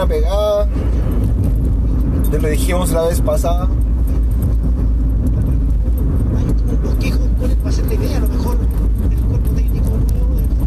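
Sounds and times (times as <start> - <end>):
speech: 0.0 - 0.8, 2.3 - 3.9
car driving with road and engine drone: 0.0 - 10.6.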